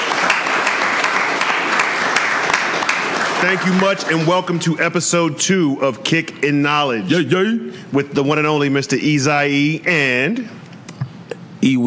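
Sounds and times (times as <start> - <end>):
audience applause: 0.0 - 4.6
speech: 3.4 - 10.6, 11.6 - 11.8.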